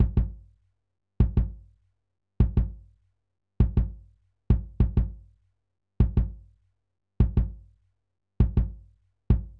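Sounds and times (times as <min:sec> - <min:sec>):
Wave Drum kick drum: 0:00.0 - 0:00.4, 0:01.2 - 0:01.6, 0:02.4 - 0:02.8, 0:03.6 - 0:05.2, 0:06.0 - 0:06.4, 0:07.2 - 0:07.6, 0:08.4 - 0:09.5.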